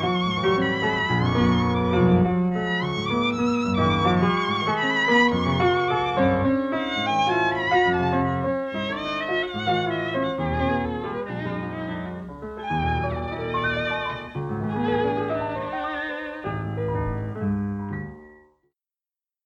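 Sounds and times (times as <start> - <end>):
violin playing a sonata: 0.0 - 17.7
piano playing a sonata: 0.0 - 18.7.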